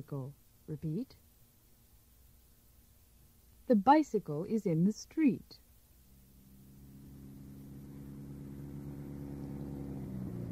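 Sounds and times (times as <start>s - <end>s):
speech: 0.0s - 1.2s, 3.7s - 5.6s
car engine in a garage idling and revving gently: 6.0s - 10.4s.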